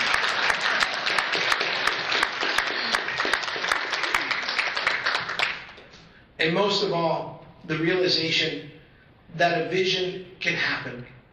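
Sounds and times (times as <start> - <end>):
audience applause: 0.0 - 5.8
speech: 6.4 - 11.2.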